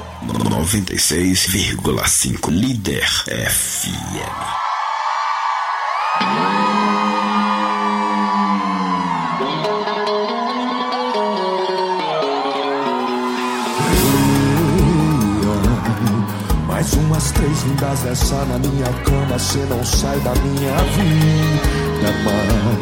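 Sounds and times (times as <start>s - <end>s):
crowd cheering and whooping at a live event: 0.0s - 0.8s, 4.1s - 22.8s
speech: 0.3s - 4.7s, 17.2s - 22.8s.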